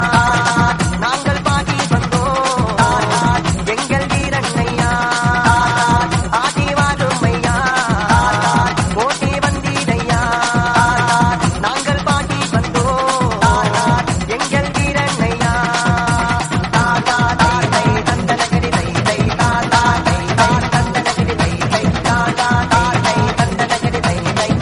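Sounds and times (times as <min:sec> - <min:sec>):
remix music: 0:00.0 - 0:24.5.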